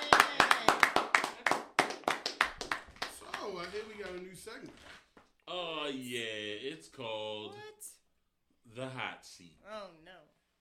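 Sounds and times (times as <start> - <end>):
clapping hands applauding performers at the end of a set: 0.0 - 4.5
speech: 3.7 - 7.9, 8.7 - 10.3.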